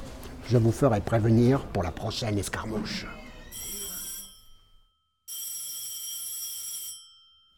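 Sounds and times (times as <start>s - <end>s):
speech: 0.5s - 3.2s
telephone ringing: 3.5s - 7.5s.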